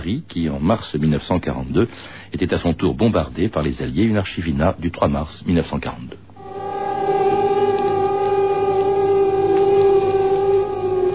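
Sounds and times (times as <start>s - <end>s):
speech: 0.0s - 6.2s
air raid alert siren wailing: 6.4s - 11.1s.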